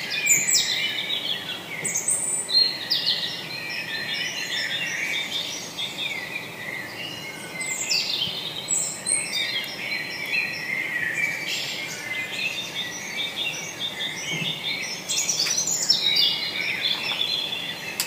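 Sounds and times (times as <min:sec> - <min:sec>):
birds singing in the morning: 0:00.0 - 0:18.0.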